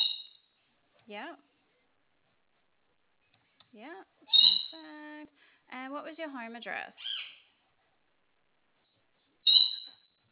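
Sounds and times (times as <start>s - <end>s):
speech: 1.1s - 1.5s, 3.7s - 7.2s
single sharp high-pitched bird call: 4.3s - 4.8s, 9.4s - 10.0s.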